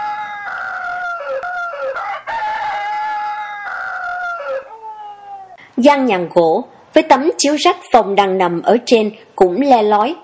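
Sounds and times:
rooster crowing in the distance at evening: 0:00.0 - 0:05.6
speech: 0:05.8 - 0:10.2.

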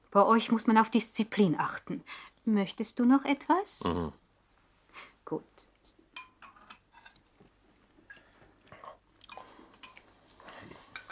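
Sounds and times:
speech: 0:00.1 - 0:04.2, 0:05.0 - 0:05.7
eating and chewing at the dinner table: 0:07.1 - 0:11.1.

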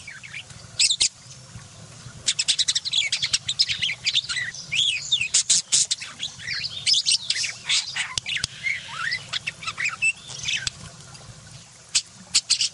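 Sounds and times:
budgerigar chattering: 0:02.3 - 0:10.8, 0:11.9 - 0:12.7.

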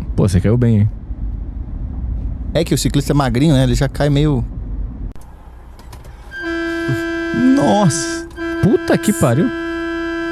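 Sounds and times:
low traffic rumble: 0:00.0 - 0:10.3
speech: 0:00.2 - 0:01.0, 0:02.6 - 0:04.5, 0:06.9 - 0:09.6
horn of the filming car honking in a long blast: 0:06.3 - 0:10.3.

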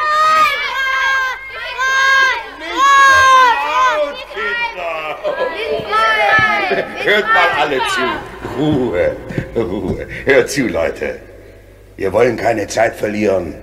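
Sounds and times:
crowd of children cheering after being freed from a dragon: 0:00.0 - 0:09.0
laughter: 0:02.6 - 0:10.8
speech: 0:06.7 - 0:11.3, 0:12.0 - 0:13.6.

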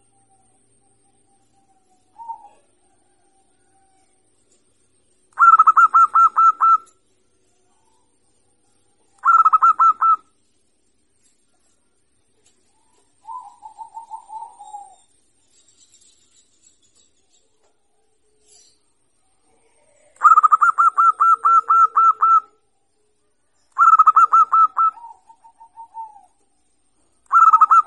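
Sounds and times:
zebra dove cooing: 0:01.6 - 0:04.2, 0:05.4 - 0:07.0, 0:09.0 - 0:10.3, 0:12.7 - 0:15.1, 0:19.4 - 0:22.6, 0:23.8 - 0:26.5, 0:27.2 - 0:27.8.

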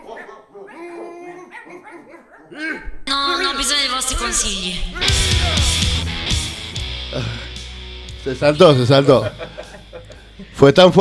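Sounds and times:
dog barking: 0:00.0 - 0:02.8
dog whimpering and yelping: 0:00.0 - 0:05.7
speech: 0:02.5 - 0:02.9, 0:04.0 - 0:06.1, 0:07.1 - 0:07.5, 0:08.2 - 0:09.6, 0:10.6 - 0:10.9
laughter: 0:03.4 - 0:10.9.

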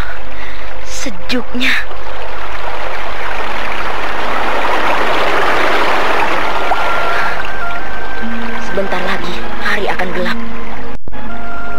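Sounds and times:
speech: 0:01.0 - 0:02.0, 0:09.9 - 0:10.5
small stream flowing water rushing: 0:01.8 - 0:09.7
faint tonal whine: 0:03.7 - 0:11.7.

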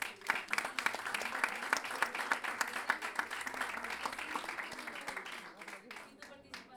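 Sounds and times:
audience applause: 0:00.0 - 0:06.6.

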